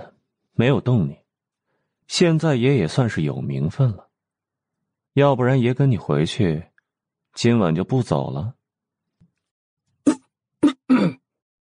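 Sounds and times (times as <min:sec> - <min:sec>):
speech: 0:00.0 - 0:01.2, 0:02.1 - 0:04.1, 0:05.2 - 0:06.7, 0:07.4 - 0:08.6
coughing: 0:10.1 - 0:11.4.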